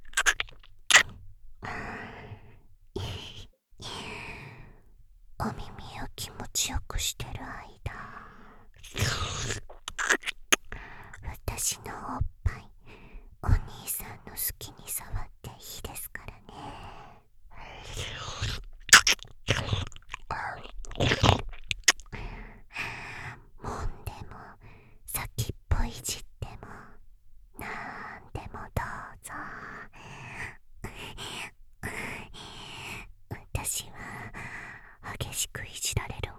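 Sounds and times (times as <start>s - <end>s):
slow ear licking: 0.0s - 1.1s, 8.8s - 10.7s, 17.9s - 22.2s
boosted whispering: 0.1s - 4.8s, 5.4s - 10.4s, 11.0s - 18.7s, 19.5s - 20.8s, 21.9s - 27.0s, 27.6s - 36.3s.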